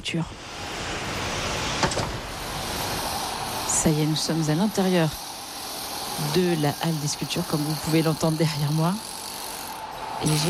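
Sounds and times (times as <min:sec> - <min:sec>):
speech: 0:00.0 - 0:00.7, 0:03.8 - 0:05.2, 0:06.2 - 0:09.1, 0:10.2 - 0:10.4
elevator doors sliding: 0:00.4 - 0:04.6.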